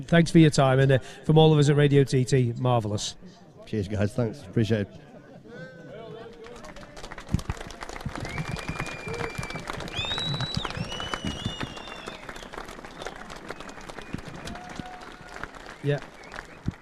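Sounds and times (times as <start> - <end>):
speech: 0.0 - 5.1, 15.8 - 16.1
crowd applause in pit lane: 6.2 - 16.7.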